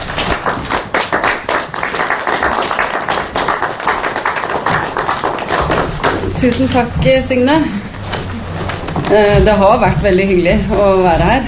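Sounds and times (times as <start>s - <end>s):
audience applause: 0.0s - 6.5s
speech: 6.4s - 7.8s, 9.1s - 11.4s.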